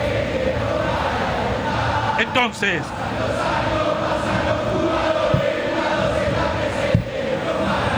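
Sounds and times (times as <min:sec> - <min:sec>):
football stadium crowd roaring and shouting: 0:00.0 - 0:07.9
speech: 0:02.2 - 0:03.6.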